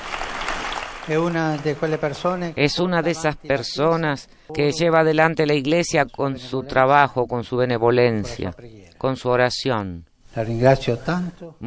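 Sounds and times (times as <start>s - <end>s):
audience applause honoring the Pope's chauffeur: 0.0s - 2.5s
speech: 1.1s - 11.6s.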